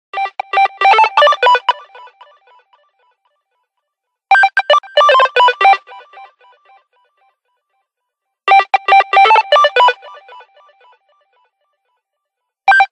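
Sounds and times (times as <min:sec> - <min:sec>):
light music ringtone: 0:00.2 - 0:02.3, 0:04.3 - 0:06.4, 0:08.5 - 0:10.6.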